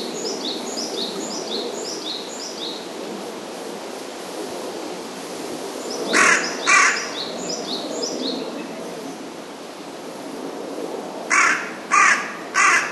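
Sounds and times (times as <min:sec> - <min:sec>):
carrion crow cawing: 0:06.2 - 0:07.1, 0:11.3 - 0:12.8.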